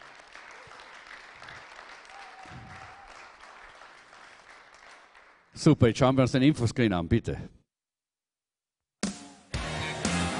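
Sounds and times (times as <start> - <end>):
audience applause: 0.0 - 5.5
speech: 5.6 - 7.6.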